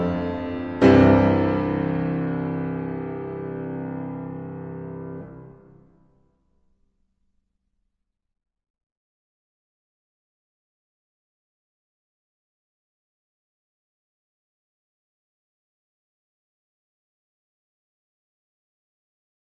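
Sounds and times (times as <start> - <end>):
piano version of a fugue in F sharp major: 0.0 - 5.8.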